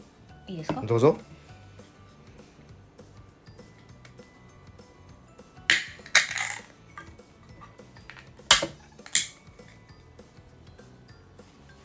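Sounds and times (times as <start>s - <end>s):
speech: 0.5s - 1.4s
beer can being opened: 5.7s - 6.6s, 8.2s - 9.4s.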